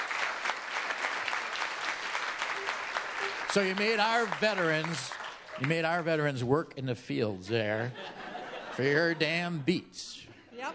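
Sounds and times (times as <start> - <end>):
audience applause: 0.0 - 6.4
laughter: 2.5 - 4.8, 7.5 - 9.8
speech: 3.6 - 8.2, 8.8 - 10.7.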